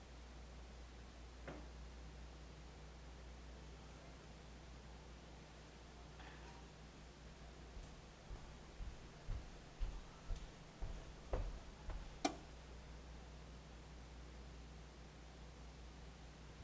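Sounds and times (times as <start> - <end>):
steady low hum while a frozen pizza cooks: 0.2 - 16.6
sharp clicks: 12.1 - 12.5.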